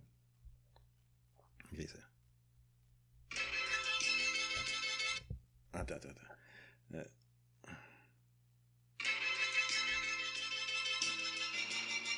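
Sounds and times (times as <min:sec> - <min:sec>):
speech: 0:01.7 - 0:02.2, 0:05.7 - 0:07.2
phone ringtone playing a film intro tune: 0:03.3 - 0:05.3, 0:09.0 - 0:12.1.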